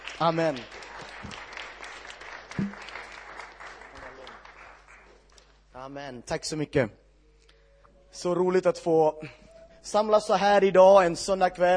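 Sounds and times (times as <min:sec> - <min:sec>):
audience applause: 0:00.0 - 0:05.2
speech: 0:00.2 - 0:01.4, 0:05.8 - 0:07.0, 0:08.1 - 0:11.7.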